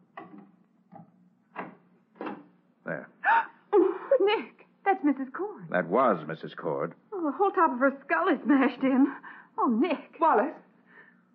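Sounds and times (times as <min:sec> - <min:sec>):
wooden door being opened: 0:00.2 - 0:02.6
speech: 0:04.3 - 0:10.6.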